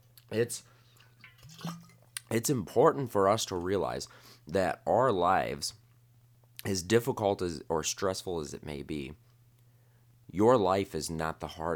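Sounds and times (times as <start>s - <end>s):
speech: 0.3s - 0.8s, 1.6s - 5.8s, 6.6s - 9.2s, 10.3s - 11.7s
person drinking a sip of water: 1.2s - 2.3s.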